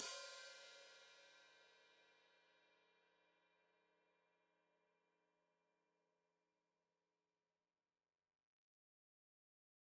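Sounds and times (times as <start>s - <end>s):
open hi-hat played with foot: 0.0s - 0.9s.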